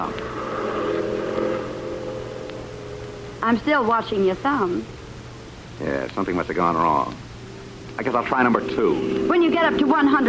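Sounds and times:
car engine humming on a road: 0.0 - 10.2
speech: 3.4 - 5.0, 5.8 - 7.2, 8.0 - 10.2.

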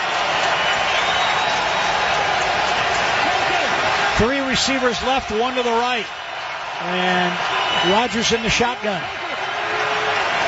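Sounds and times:
stadium crowd cheering: 0.0 - 10.4
speech: 4.2 - 6.2, 6.8 - 9.2.

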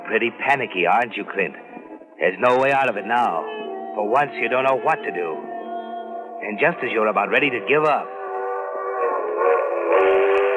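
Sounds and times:
speech: 0.1 - 5.5, 6.4 - 8.1
train whistle: 9.0 - 10.5.

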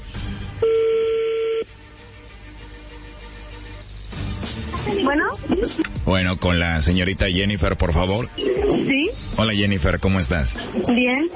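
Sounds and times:
electronic telephone tone: 0.6 - 1.7
phone line hiss: 0.6 - 1.7
speech: 5.1 - 11.3.

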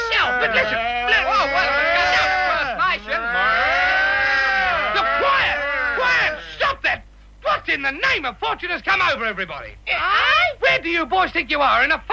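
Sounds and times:
man imitating cow moos: 0.0 - 6.6
speech: 0.4 - 1.8, 7.7 - 12.1.

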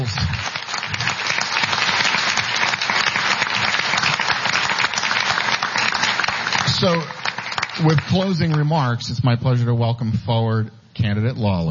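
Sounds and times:
audience applause: 0.0 - 9.0
speech: 6.8 - 7.2, 7.8 - 11.6.

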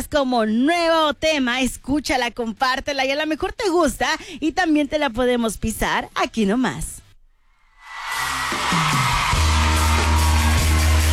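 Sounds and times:
speech: 0.1 - 7.0
cheering: 7.8 - 11.1
applause: 8.1 - 11.1.

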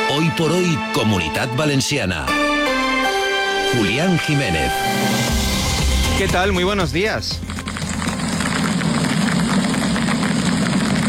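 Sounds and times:
speech: 0.1 - 2.8, 3.7 - 5.6, 6.2 - 7.5
golf-ball-sized hail falling during storm in Casas Bajas: 4.9 - 11.0.

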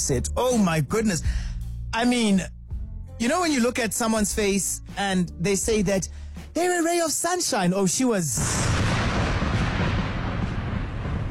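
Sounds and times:
speech: 0.0 - 2.6, 3.2 - 8.8
thunder rumbling: 8.4 - 11.3.

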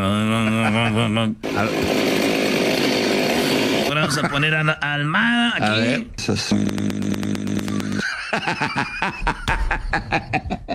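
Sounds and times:
speech: 0.0 - 2.0, 4.1 - 10.6
laughter: 0.1 - 1.8, 3.8 - 4.8, 7.6 - 10.7
chainsaw engine revving: 1.4 - 4.0, 6.6 - 8.0.

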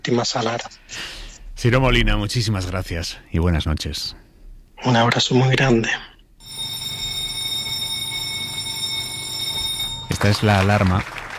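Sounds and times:
speech: 0.0 - 4.2, 4.8 - 6.1, 10.2 - 11.1
newsroom meeting start alarm at El País: 6.4 - 11.0.

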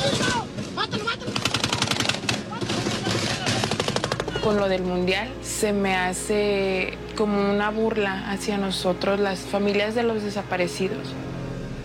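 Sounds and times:
automatic gunfire: 0.0 - 4.5
speech: 4.4 - 11.2.

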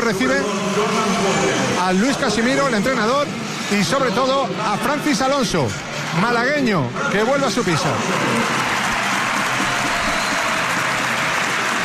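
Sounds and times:
speech: 0.1 - 8.6
large arena crowd applauding a basketball player: 7.3 - 11.8.

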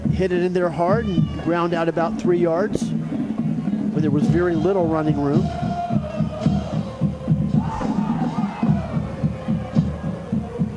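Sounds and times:
speech: 0.2 - 3.0, 4.0 - 5.6
large enthusiastic crowd chanting at Sanford Seminole on senior night: 2.1 - 10.7.

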